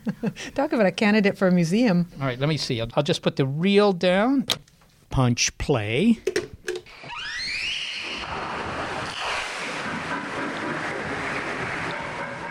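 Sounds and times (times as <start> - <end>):
speech: 0.1 - 6.5
humpback whale social calls: 6.9 - 12.4.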